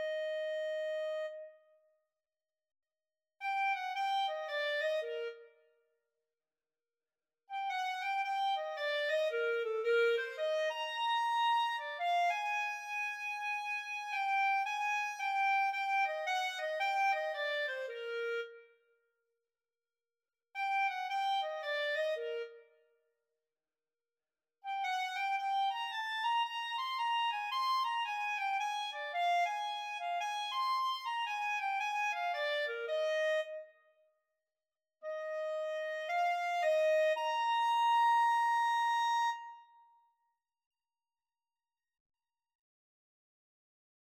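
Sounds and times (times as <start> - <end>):
clarinet and saxophone duet: 0.0 - 1.4, 3.5 - 5.4, 7.6 - 18.5, 20.7 - 22.6, 24.7 - 33.6, 35.1 - 39.7.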